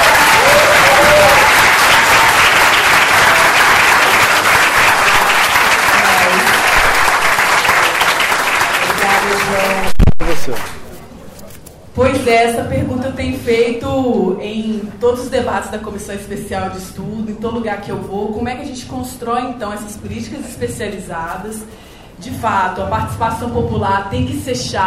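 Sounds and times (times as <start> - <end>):
audience applause: 0.0 - 10.8
speech: 10.5 - 10.7, 12.0 - 24.8.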